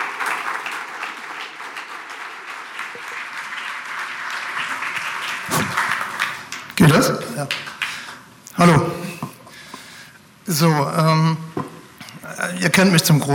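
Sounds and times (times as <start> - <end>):
audience applause: 0.0 - 8.2
speech: 7.0 - 7.7, 8.6 - 8.9, 10.5 - 11.4, 12.5 - 13.3.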